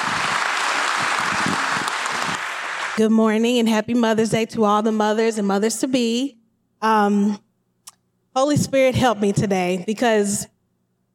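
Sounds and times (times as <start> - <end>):
crowd applause welcoming a speaker at a Mother's Day church gathering: 0.0 - 3.0
speech: 3.0 - 7.4, 8.4 - 10.5.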